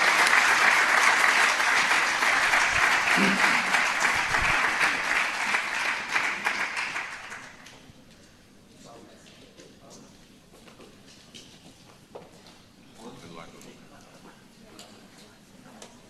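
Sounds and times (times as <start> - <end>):
applause for award winners: 0.0 - 7.8.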